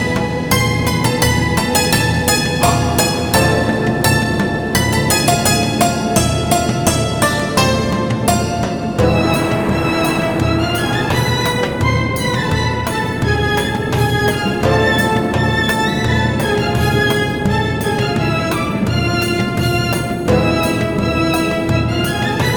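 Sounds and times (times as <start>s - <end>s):
ambient music: 0.0s - 22.5s.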